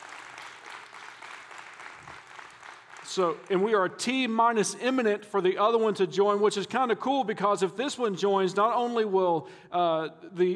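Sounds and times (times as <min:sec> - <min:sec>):
audience applause: 0:00.0 - 0:03.2
speech: 0:03.2 - 0:10.5.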